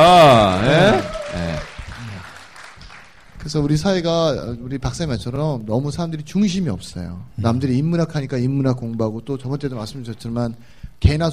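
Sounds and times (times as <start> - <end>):
audience clapping: 0.0 - 3.6
speech: 3.5 - 11.3.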